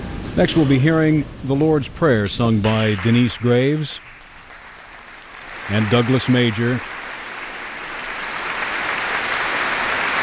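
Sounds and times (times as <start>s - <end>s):
speech: 0.4s - 4.1s, 5.7s - 6.9s
congregation applause: 3.1s - 10.2s.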